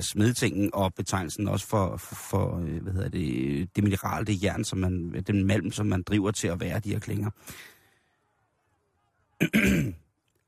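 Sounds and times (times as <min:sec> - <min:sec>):
speech: 0:00.0 - 0:07.8, 0:09.4 - 0:10.0
throat clearing from a dry throat: 0:09.4 - 0:10.0.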